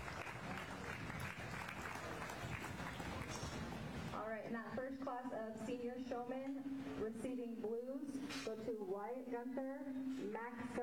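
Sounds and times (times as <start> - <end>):
audience applause at livestock show: 0.0 - 4.1
speech: 4.3 - 10.8.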